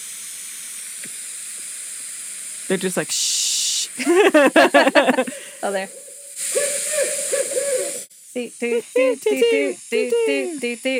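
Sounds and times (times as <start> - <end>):
speech: 2.7 - 3.3, 4.0 - 6.0, 8.4 - 10.9
laughter: 4.0 - 5.8, 8.7 - 10.7
barred owl mating call: 5.4 - 8.1.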